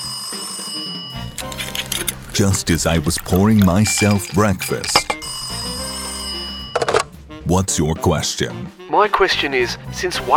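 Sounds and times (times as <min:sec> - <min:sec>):
telephone ringing: 0:00.0 - 0:07.1
speech: 0:02.4 - 0:05.0, 0:07.5 - 0:10.3.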